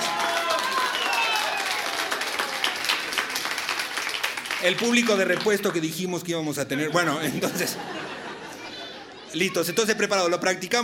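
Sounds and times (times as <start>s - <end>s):
audience applause: 0.0s - 6.0s
speech: 4.6s - 8.2s, 9.3s - 10.8s
laughter: 6.7s - 10.4s.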